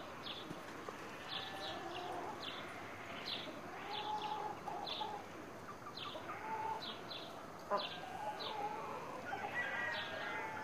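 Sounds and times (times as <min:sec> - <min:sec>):
chickens clucking on a village farm: 0:00.0 - 0:10.6.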